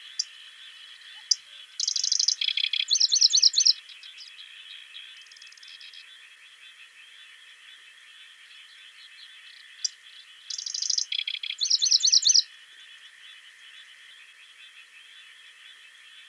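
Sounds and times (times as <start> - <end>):
river warbler singing: 0.0 - 6.0, 8.8 - 12.5.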